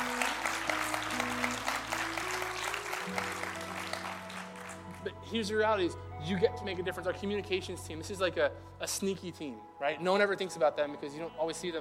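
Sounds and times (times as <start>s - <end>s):
audience clapping and cheering: 0.0s - 5.2s
speech: 5.3s - 11.7s.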